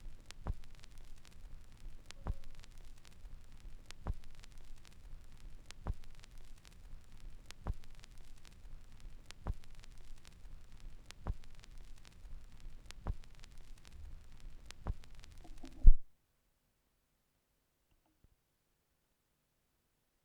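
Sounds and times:
vinyl record noise: 0.0 - 16.0.

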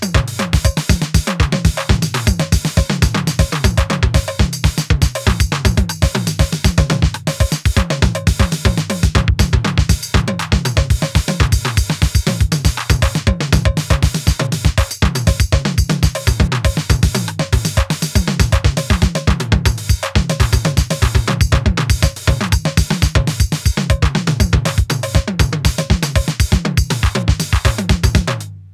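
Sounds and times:
TR707 drum machine beat: 0.0 - 28.6.

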